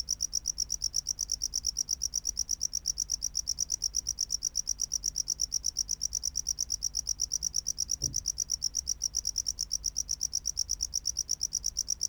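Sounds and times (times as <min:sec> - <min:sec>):
tropical house cricket song: 0:00.0 - 0:12.0
low thump: 0:08.0 - 0:08.3.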